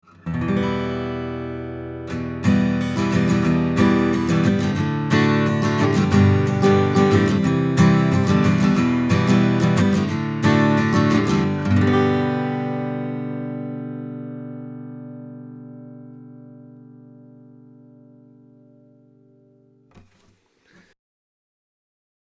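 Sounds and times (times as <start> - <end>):
acoustic guitar chords recorded with U67 cardioid microphone, bass roll-off: 0.0 - 20.2.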